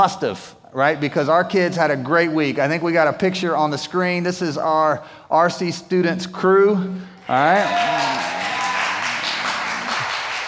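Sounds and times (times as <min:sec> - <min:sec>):
speech: 0:00.0 - 0:08.4
crowd clapping: 0:07.2 - 0:10.4.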